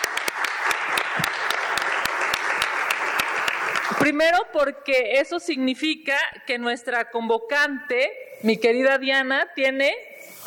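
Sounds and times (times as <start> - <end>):
audience applause: 0.0 - 4.0
speech: 4.0 - 10.4.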